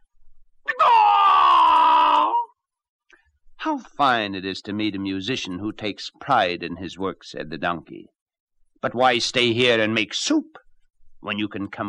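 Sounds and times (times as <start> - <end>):
person imitating rooster crow: 0.7 - 2.5
speech: 3.6 - 8.2, 8.8 - 10.6, 11.2 - 11.8.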